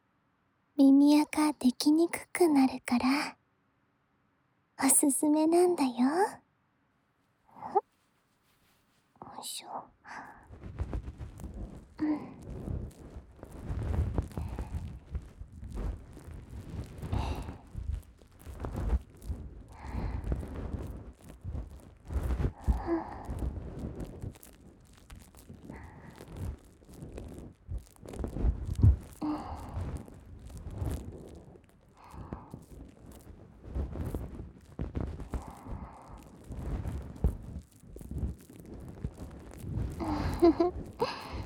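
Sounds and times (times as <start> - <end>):
speech: 0.8 - 3.4, 4.8 - 6.4, 9.3 - 10.3, 12.0 - 12.7
moisturizing cream rubbed onto ears: 10.3 - 41.4.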